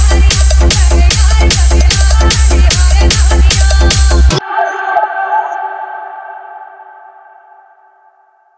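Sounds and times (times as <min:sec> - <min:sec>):
EDM trance mix: 0:00.0 - 0:05.8.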